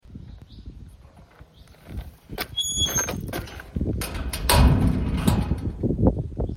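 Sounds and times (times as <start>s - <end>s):
gate noises: 1.0s - 6.2s.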